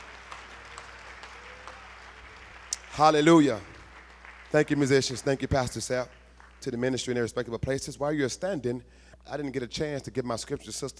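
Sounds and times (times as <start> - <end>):
congregation clapping hands at a church service: 0.0 - 7.4
speech: 3.0 - 3.7, 4.5 - 10.9.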